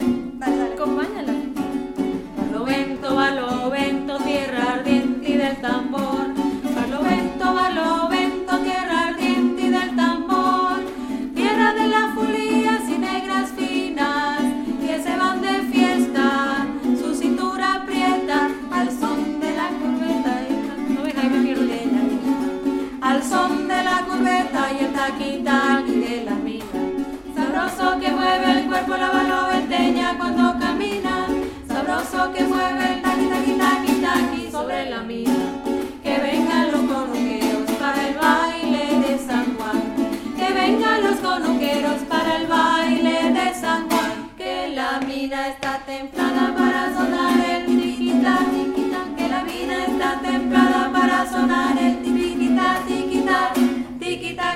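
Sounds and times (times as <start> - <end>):
Barlovento contralto voices singing: 0.0 - 54.5.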